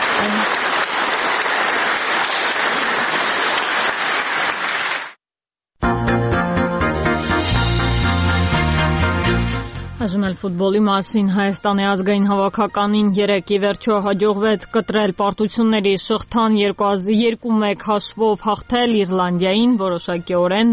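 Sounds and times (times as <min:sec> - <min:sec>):
audience applause after a speech: 0:00.0 - 0:05.2
speech: 0:00.2 - 0:00.6, 0:10.0 - 0:20.7
music: 0:05.8 - 0:20.7.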